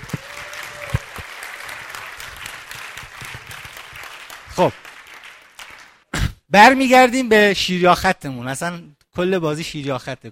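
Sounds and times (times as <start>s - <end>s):
audience applause for seated participants at a talk: 0.0s - 6.1s
speech: 4.6s - 4.8s, 6.5s - 10.3s.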